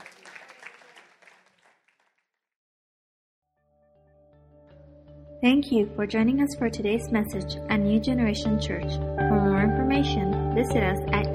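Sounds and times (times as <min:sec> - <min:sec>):
crowd clapping: 0:00.0 - 0:02.3
speech: 0:05.4 - 0:11.3
sustained keyboard music: 0:05.4 - 0:11.3.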